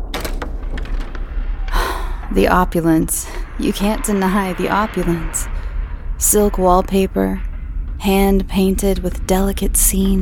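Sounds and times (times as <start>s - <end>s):
door opening: 0.0s - 2.4s
steady low rumble: 0.0s - 10.2s
speech: 2.3s - 5.6s, 6.2s - 10.2s.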